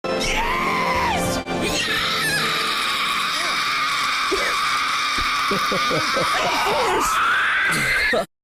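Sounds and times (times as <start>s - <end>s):
person victory scream: 0.2s - 8.3s
laughter: 5.1s - 8.3s.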